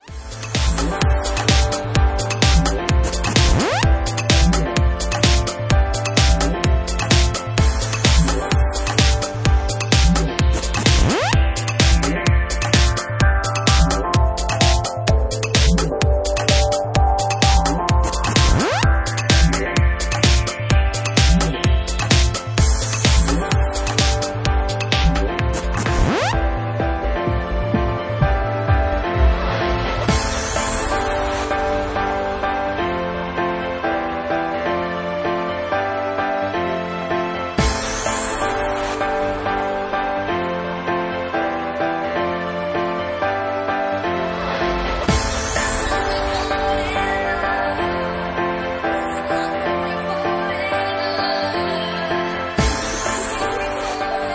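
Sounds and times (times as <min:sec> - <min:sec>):
electro mix: 0:00.0 - 0:54.3.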